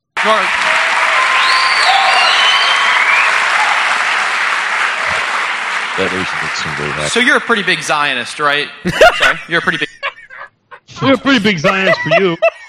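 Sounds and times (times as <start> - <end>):
audience applause: 0.1 - 8.6
speech: 6.0 - 10.0, 11.0 - 12.4
laughter: 6.0 - 12.6.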